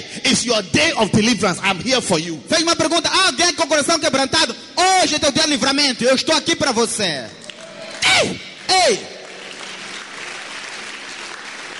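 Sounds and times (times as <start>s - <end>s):
speech: 0.0s - 7.4s, 8.2s - 9.1s
large audience clapping: 7.4s - 11.7s.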